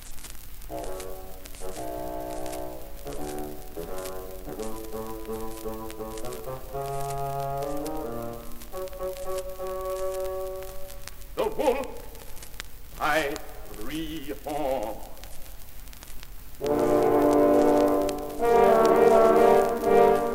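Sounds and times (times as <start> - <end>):
constant hiss: 0.0 - 20.3
bassoon melody: 0.7 - 11.0, 16.6 - 20.3.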